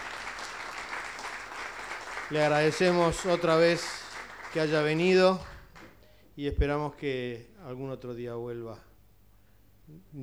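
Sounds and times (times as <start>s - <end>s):
audience applause: 0.0s - 6.0s
speech: 2.3s - 5.5s, 6.4s - 8.9s, 9.9s - 10.2s.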